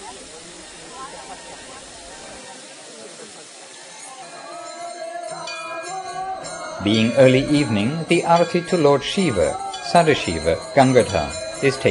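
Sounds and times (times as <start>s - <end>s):
water spraying and splashing: 0.0s - 4.6s
speech: 6.8s - 11.8s.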